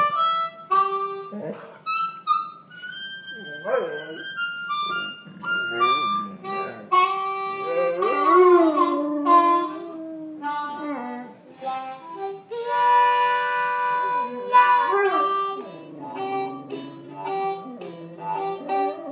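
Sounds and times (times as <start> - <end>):
sustained bright instrumental notes: 0.0 - 19.0
dog howling along with music: 7.6 - 11.3, 14.6 - 19.0.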